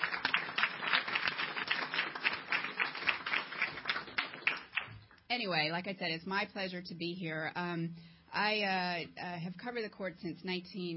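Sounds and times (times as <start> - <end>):
audience applause: 0.0 - 5.0
speech: 5.3 - 10.9.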